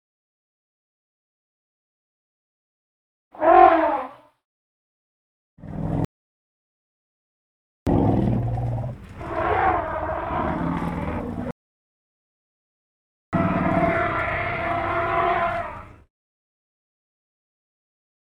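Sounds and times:
African elephant trumpeting: 0:03.4 - 0:04.2, 0:08.0 - 0:11.4, 0:13.4 - 0:16.0.

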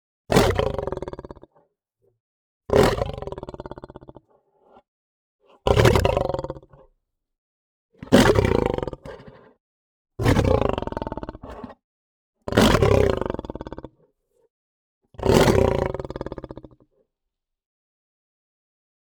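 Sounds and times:
lion snarling: 0:00.3 - 0:01.6, 0:02.7 - 0:04.8, 0:05.5 - 0:06.8, 0:08.0 - 0:09.6, 0:10.2 - 0:11.8, 0:12.5 - 0:14.0, 0:15.2 - 0:16.8.

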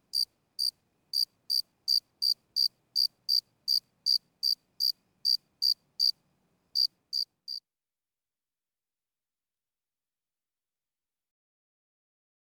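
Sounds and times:
cricket chirping: 0:00.1 - 0:07.6.

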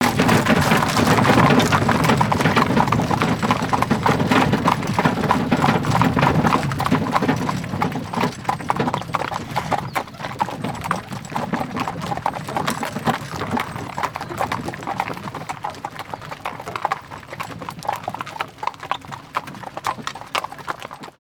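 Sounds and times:
carriage rumbling: 0:00.0 - 0:15.6
horse hoofbeats clopping: 0:00.0 - 0:21.2.

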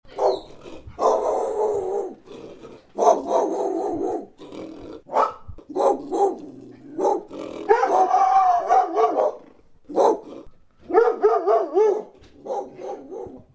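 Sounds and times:
dog barking: 0:00.1 - 0:02.2, 0:03.0 - 0:04.3, 0:05.1 - 0:06.4, 0:07.0 - 0:10.3, 0:10.9 - 0:13.5.

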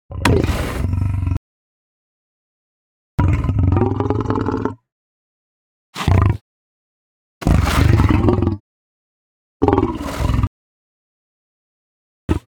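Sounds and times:
lion growling: 0:00.1 - 0:01.4, 0:03.2 - 0:04.8, 0:06.0 - 0:06.4, 0:07.4 - 0:08.6, 0:09.6 - 0:10.5.

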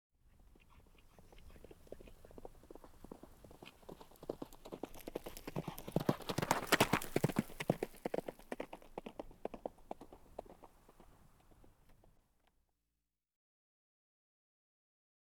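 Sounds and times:
horse cantering hoofbeats: 0:00.3 - 0:12.2.

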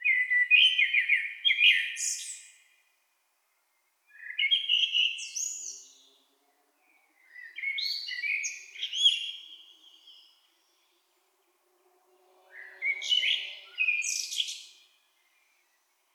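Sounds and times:
blackbird singing: 0:00.0 - 0:02.6, 0:04.1 - 0:06.2, 0:06.9 - 0:10.9, 0:12.5 - 0:15.8.

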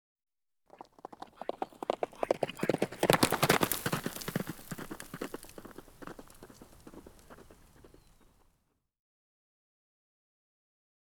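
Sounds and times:
horse hoofbeats at a canter on dirt: 0:00.7 - 0:08.5.

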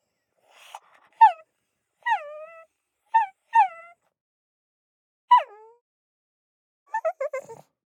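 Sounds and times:
pug whining and whimpering: 0:00.5 - 0:01.4, 0:02.0 - 0:03.9, 0:06.9 - 0:07.7.

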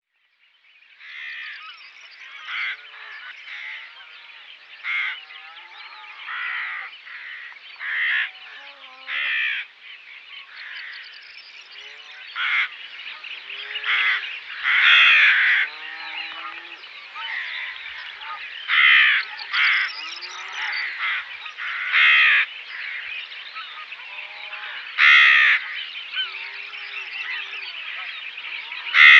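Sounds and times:
rook caws: 0:01.0 - 0:01.6, 0:02.4 - 0:04.1, 0:04.8 - 0:05.2, 0:06.0 - 0:08.4, 0:09.1 - 0:09.7, 0:12.3 - 0:12.8, 0:13.8 - 0:23.2, 0:24.5 - 0:27.7, 0:28.8 - 0:29.1.

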